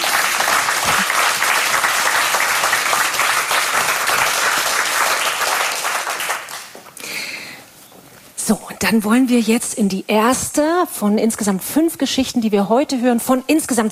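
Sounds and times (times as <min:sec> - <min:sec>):
applause: 0:00.0 - 0:07.0
speech: 0:08.5 - 0:13.9.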